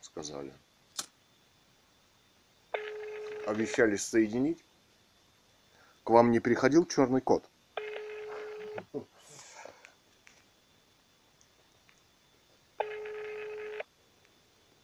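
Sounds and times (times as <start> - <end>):
speech: 0.1 - 0.7, 3.5 - 4.7, 6.1 - 7.5, 8.8 - 9.1
telephone ringback tone: 2.8 - 3.8, 7.8 - 8.8, 12.8 - 13.9.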